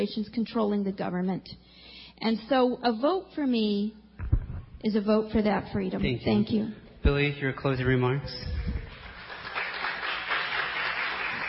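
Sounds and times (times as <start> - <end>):
speech: 0.0 - 4.0, 4.8 - 8.6
audience applause: 8.8 - 11.4.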